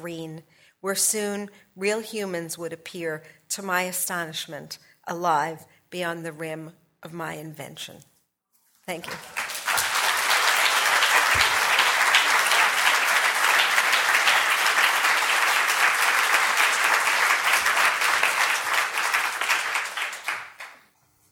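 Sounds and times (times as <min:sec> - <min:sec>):
speech: 0:00.0 - 0:08.1, 0:08.9 - 0:09.4
audience applause after a reading: 0:09.0 - 0:20.9.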